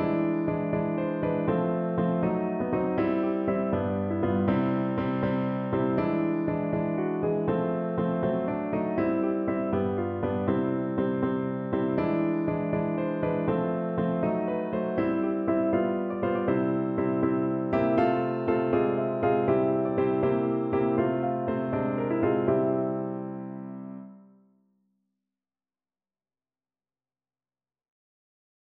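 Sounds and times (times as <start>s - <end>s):
short piano piece: 0.0s - 24.4s.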